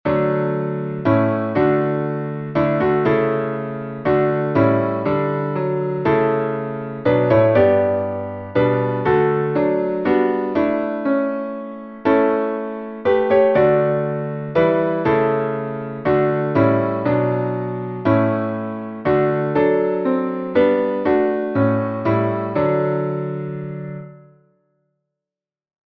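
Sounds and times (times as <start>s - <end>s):
instrumental psalm music: 0.1s - 24.2s.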